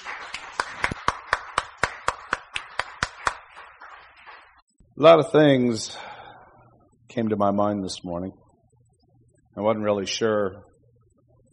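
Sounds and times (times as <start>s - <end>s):
faint rhythmic clapping for the Lord at a church service: 0.0s - 4.8s
speech: 5.0s - 6.1s, 7.2s - 8.4s, 9.6s - 10.7s.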